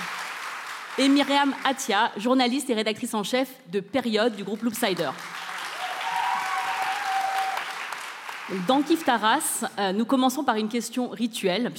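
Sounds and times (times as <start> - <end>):
audience applause: 0.0 - 1.7, 5.0 - 9.2
speech: 1.0 - 5.4, 8.5 - 11.7.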